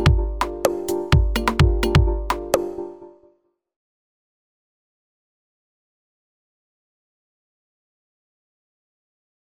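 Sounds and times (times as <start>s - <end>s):
drum machines: 0.0s - 2.8s.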